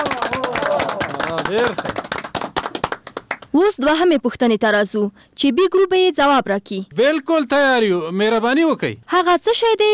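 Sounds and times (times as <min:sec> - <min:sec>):
audience clapping for a correct answer in a group quiz game: 0:00.0 - 0:03.6
speech: 0:01.5 - 0:02.0, 0:03.6 - 0:09.9.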